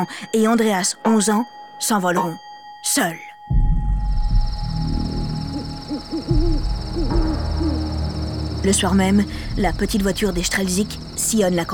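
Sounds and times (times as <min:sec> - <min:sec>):
speech: 0:00.0 - 0:03.3, 0:08.6 - 0:11.7
low rumbling background: 0:03.5 - 0:11.7
high-pitched insect-like chirr: 0:03.7 - 0:11.7
owls hooting at night: 0:04.4 - 0:11.7.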